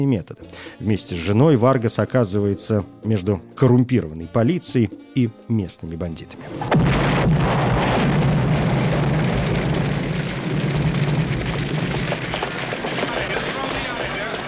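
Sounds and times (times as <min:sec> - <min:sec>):
speech: 0:00.0 - 0:07.6
car explosion: 0:06.5 - 0:13.7.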